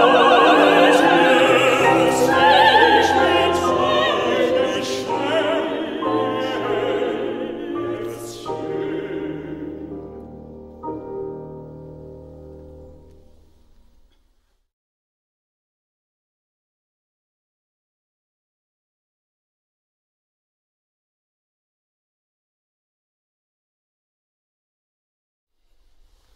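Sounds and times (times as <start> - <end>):
choir singing: 0.0 - 11.1.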